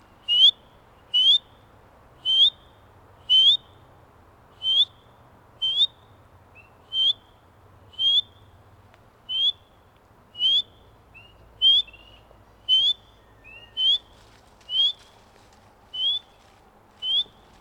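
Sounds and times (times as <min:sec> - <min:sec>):
spring peeper frog calls: 0:00.2 - 0:01.6, 0:02.2 - 0:03.8, 0:04.6 - 0:08.5, 0:09.3 - 0:09.8, 0:10.4 - 0:15.1, 0:15.9 - 0:16.3, 0:17.0 - 0:17.4.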